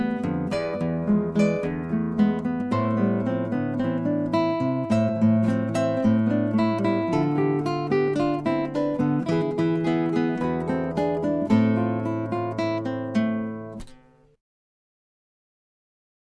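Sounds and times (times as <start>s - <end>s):
rock tango trio music: 0.0s - 13.9s.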